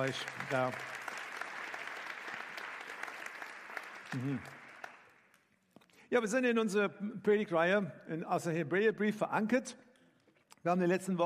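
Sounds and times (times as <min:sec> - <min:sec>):
speech: 0:00.0 - 0:01.0, 0:04.1 - 0:04.6, 0:06.1 - 0:09.8, 0:10.6 - 0:11.2
audience clapping: 0:00.0 - 0:05.6.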